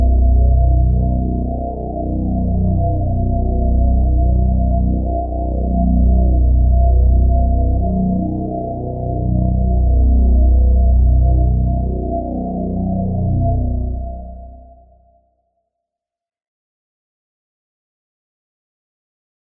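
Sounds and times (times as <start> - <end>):
drone at 120 BPM in B major: 0.0 - 15.1.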